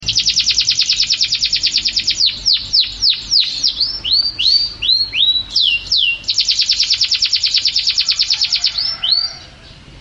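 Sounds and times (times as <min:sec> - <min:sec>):
canary singing a fast high trill: 0:00.0 - 0:09.9.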